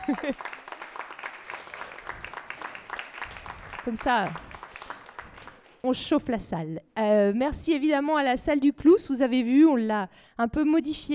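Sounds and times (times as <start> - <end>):
audience applause: 0.0 - 5.8
speech: 0.1 - 0.6, 3.8 - 4.5, 5.8 - 11.1.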